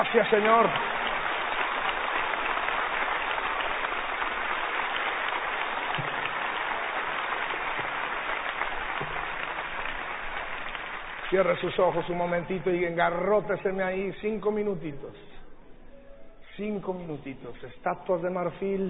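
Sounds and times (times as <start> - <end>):
speech: 0.0 - 1.0, 11.3 - 15.4, 16.6 - 18.8
audience applauding: 0.0 - 13.3.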